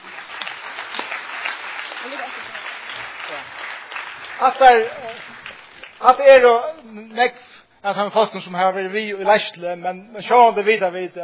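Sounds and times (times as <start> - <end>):
audience applause: 0.0 - 6.5
speech: 4.4 - 5.3, 6.0 - 11.2.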